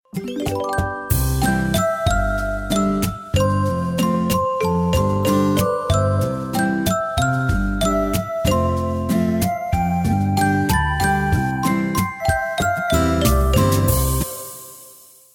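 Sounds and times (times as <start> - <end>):
Gionee stock phone melody: 0.2 - 14.9.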